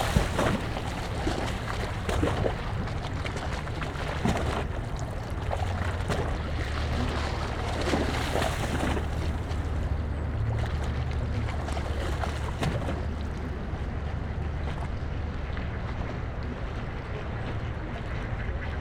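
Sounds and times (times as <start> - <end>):
passenger liner creating swirling wake: 0.0 - 18.7.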